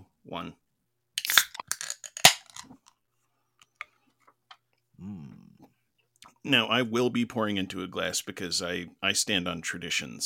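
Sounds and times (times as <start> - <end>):
speech: 0.3 - 0.6, 6.5 - 10.2
beer cans being cracked open: 1.2 - 2.9.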